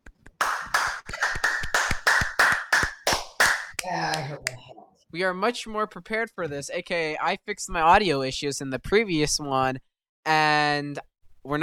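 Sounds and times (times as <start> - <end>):
hand claps: 0.0 - 4.6
speech: 3.9 - 11.6.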